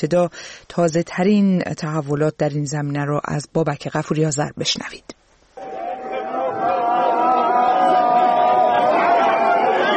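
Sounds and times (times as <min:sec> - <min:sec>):
speech: 0:00.0 - 0:05.2
crowd shouting and wailing at funeral: 0:05.6 - 0:09.9.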